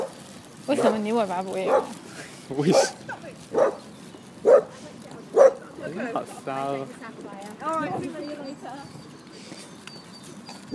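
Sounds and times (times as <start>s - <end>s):
speech: 0.7s - 3.8s, 5.9s - 9.1s
dog barking at other dogs: 1.6s - 2.0s, 2.7s - 3.8s, 4.4s - 4.7s, 5.3s - 5.6s.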